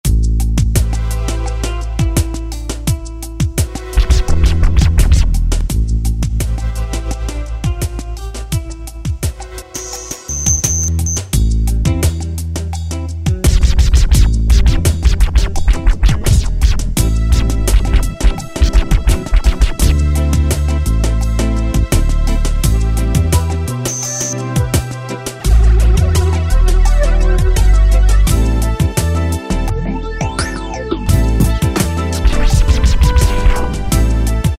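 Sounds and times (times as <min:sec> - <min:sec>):
swing hop music: 0:00.1 - 0:34.5.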